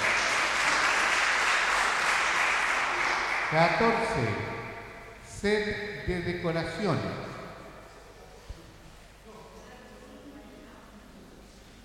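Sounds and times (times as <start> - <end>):
crowd applause: 0.0 - 4.7
speech: 3.5 - 4.6, 5.4 - 7.3.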